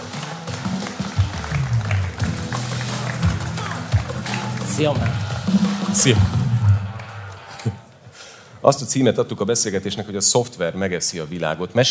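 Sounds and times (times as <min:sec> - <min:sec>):
audience applause: 0:00.0 - 0:07.9
speech: 0:04.8 - 0:06.4, 0:08.6 - 0:11.9.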